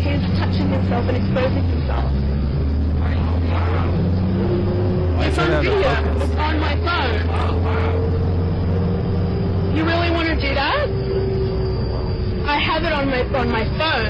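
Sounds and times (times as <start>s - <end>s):
bus engine rumble: 0.0s - 14.0s
speech: 0.9s - 2.6s, 5.3s - 8.0s, 9.8s - 11.0s, 12.5s - 14.0s.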